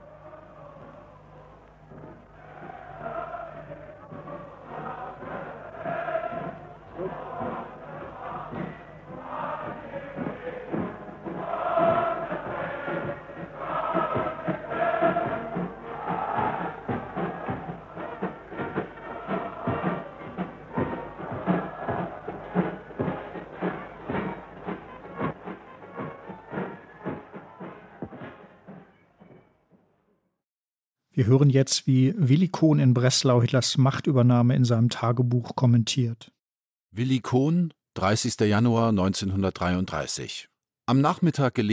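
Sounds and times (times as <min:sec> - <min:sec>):
crowd cheering and roaring: 0:00.0 - 0:29.6
music playing from outside: 0:00.0 - 0:30.4
people shouting: 0:02.4 - 0:25.3
speech: 0:31.2 - 0:41.7.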